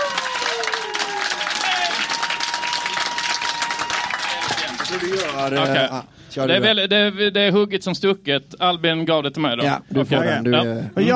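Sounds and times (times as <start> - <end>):
audience applause: 0.0 - 6.0
speech: 4.9 - 11.1.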